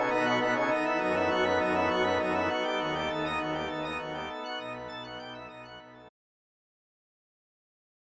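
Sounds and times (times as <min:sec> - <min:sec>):
brass: 0:00.0 - 0:06.0
organ: 0:00.0 - 0:06.1.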